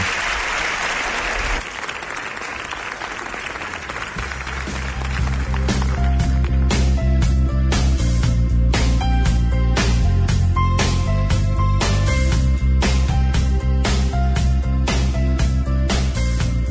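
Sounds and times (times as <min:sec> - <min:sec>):
theatre audience applause: 0:00.0 - 0:07.0
loud music: 0:04.2 - 0:16.6.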